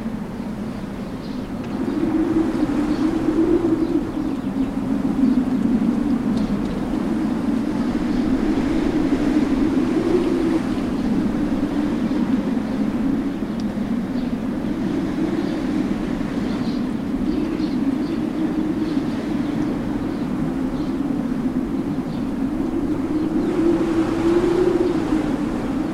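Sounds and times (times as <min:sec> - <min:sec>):
howling wind in a highland villa: 0:00.0 - 0:25.9.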